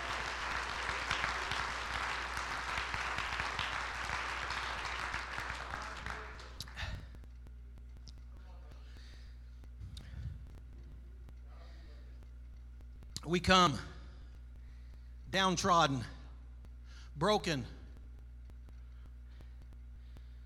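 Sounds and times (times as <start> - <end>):
audience clapping in praise: 0.0 - 7.2
speech: 13.3 - 13.9, 15.3 - 16.2, 17.2 - 17.8.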